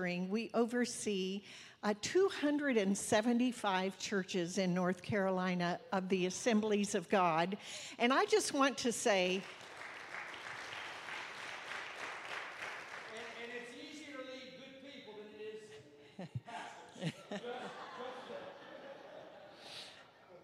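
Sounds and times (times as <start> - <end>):
speech: 0.0 - 9.7
audience applause in a church: 9.4 - 13.8
laughter: 15.8 - 20.4.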